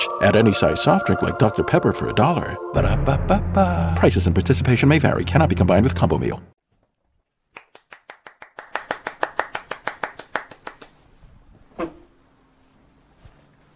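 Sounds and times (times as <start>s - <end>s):
speech: 0.0s - 6.5s
hand claps: 7.5s - 11.0s.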